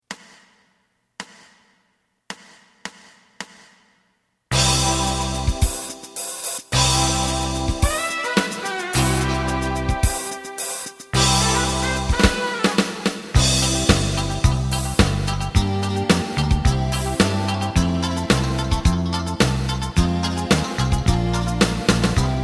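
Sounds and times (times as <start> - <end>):
lead melody: 4.6 - 22.4.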